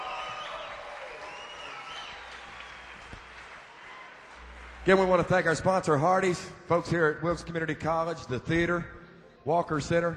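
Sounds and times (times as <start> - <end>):
scattered cheers and whistles: 0.0 - 4.5
festival crowd applause: 0.0 - 5.6
speech: 4.9 - 10.1.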